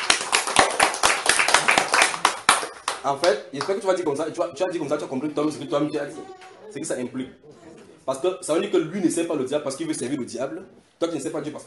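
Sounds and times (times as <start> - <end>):
church congregation applause after a teaching: 0.0 - 3.0
speech: 3.0 - 11.6.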